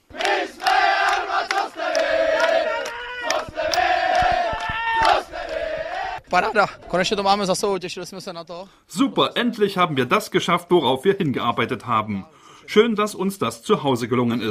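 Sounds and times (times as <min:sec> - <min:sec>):
team cheering in locker room: 0:00.1 - 0:07.2
speech: 0:06.3 - 0:14.4.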